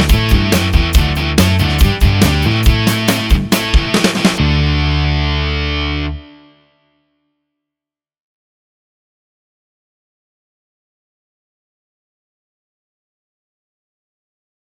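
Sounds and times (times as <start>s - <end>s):
backing track in D major: 0.0s - 6.4s.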